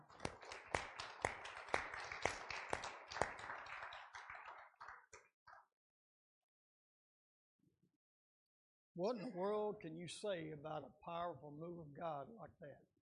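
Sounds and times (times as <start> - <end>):
audience hand clapping: 0.0 - 5.7
speech: 9.0 - 12.9.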